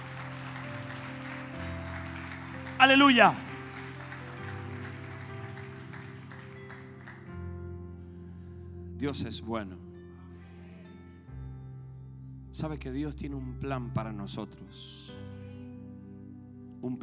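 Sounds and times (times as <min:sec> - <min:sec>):
audience applauding: 0:00.0 - 0:07.4
sustained musical backdrop: 0:00.0 - 0:17.0
speech: 0:02.8 - 0:03.4, 0:09.0 - 0:09.9, 0:12.6 - 0:15.3, 0:16.8 - 0:17.0
person shouting: 0:02.8 - 0:03.5.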